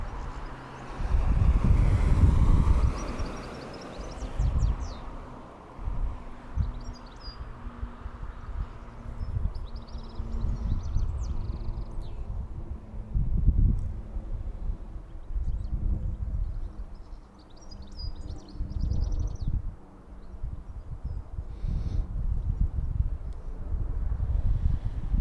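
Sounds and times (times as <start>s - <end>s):
traffic at a bus stop: 0.0s - 25.1s
birds at a bus stop: 2.7s - 5.4s, 6.4s - 12.3s, 14.9s - 22.0s.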